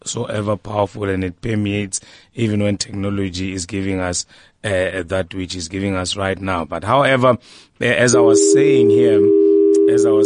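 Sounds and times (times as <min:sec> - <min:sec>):
speech: 0:00.0 - 0:10.2
steady phone-line tone: 0:08.1 - 0:10.2.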